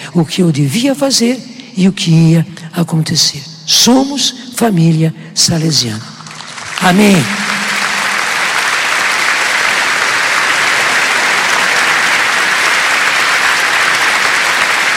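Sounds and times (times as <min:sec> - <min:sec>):
speech: 0:00.1 - 0:06.1, 0:06.8 - 0:07.6
audience applause: 0:06.2 - 0:14.9.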